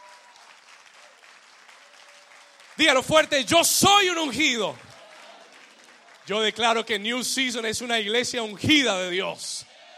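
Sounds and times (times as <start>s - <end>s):
audience applause: 0.0s - 7.0s
speech: 2.8s - 4.9s, 6.3s - 9.7s.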